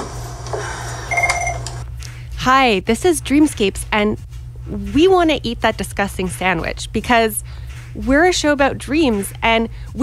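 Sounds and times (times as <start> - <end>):
telephone ringing: 1.1 - 1.8
speech: 2.4 - 10.0.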